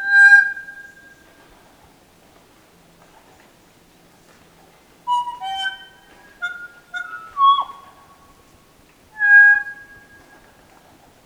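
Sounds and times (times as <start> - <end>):
kōkako bell-like song: 5.1 - 8.1, 9.2 - 10.3.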